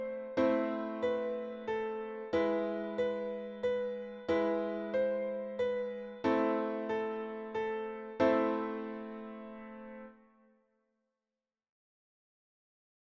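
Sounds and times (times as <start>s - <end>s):
piano: 0.0s - 10.5s.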